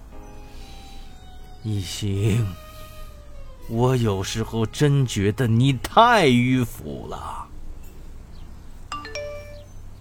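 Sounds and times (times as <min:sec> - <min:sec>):
speech: 0:01.6 - 0:02.6, 0:03.7 - 0:07.5
mobile phone message notification chime: 0:08.9 - 0:09.7.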